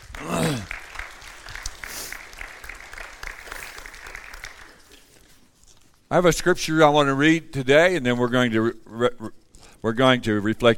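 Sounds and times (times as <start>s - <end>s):
audience clapping hands: 0.0s - 5.4s
speech: 6.1s - 10.7s.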